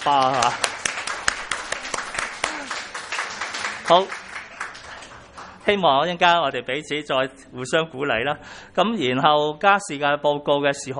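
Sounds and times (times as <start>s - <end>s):
speech: 0.0s - 0.7s, 3.9s - 4.2s, 5.6s - 10.9s
audience clapping: 0.0s - 6.0s.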